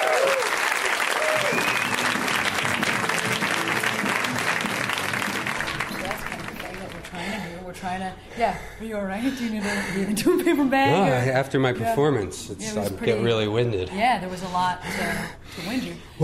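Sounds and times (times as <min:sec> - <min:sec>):
crowd whooping: 0:00.0 - 0:05.8
crowd applauding a comedian: 0:00.0 - 0:07.4
speech: 0:07.9 - 0:16.2.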